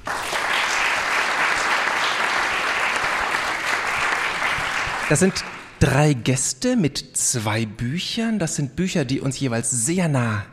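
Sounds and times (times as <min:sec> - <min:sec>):
audience applause: 0:00.0 - 0:05.8
speech: 0:05.1 - 0:10.5.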